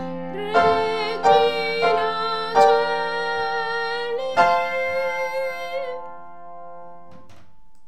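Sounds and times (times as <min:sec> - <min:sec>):
sopranos singing a Latin hymn: 0:00.3 - 0:06.1.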